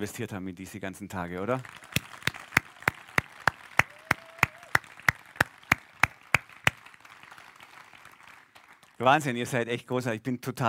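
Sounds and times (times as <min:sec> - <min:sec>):
speech: 0:00.0 - 0:02.1, 0:09.0 - 0:10.6
audience clapping in rhythm: 0:01.4 - 0:09.2.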